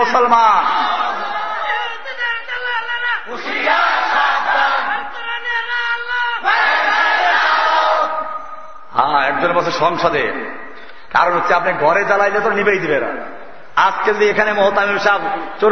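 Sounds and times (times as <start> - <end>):
speech: 0.1 - 0.9, 9.3 - 15.7
crowd shouting in unison in response to a preacher's sermon: 0.6 - 2.1, 3.3 - 8.4.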